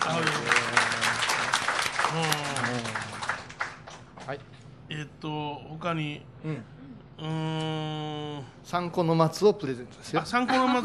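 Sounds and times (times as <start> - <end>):
applause: 0.0 - 4.4
speech: 4.3 - 10.8.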